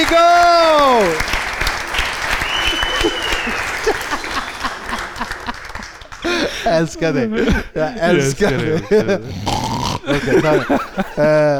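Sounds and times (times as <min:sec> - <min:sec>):
audience applause: 0:00.0 - 0:06.9
laughter: 0:00.0 - 0:11.5
speech: 0:00.1 - 0:00.4, 0:06.7 - 0:11.5.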